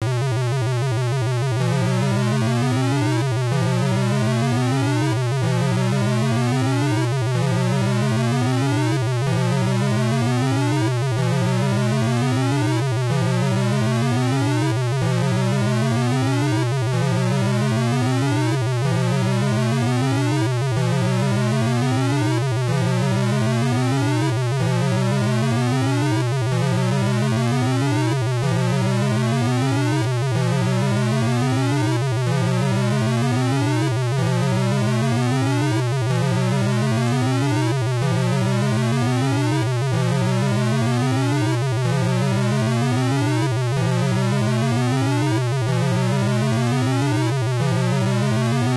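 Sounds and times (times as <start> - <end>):
alarm: 0.2 - 48.7.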